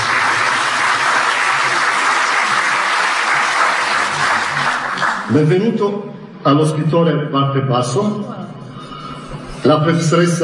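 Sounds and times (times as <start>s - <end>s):
crowd applause: 0.0s - 5.6s
speech: 5.3s - 8.5s, 9.6s - 10.4s.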